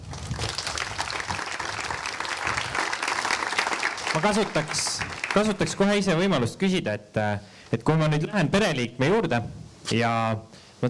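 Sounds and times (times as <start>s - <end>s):
audience applause: 0.0s - 6.0s
speech: 4.2s - 10.8s.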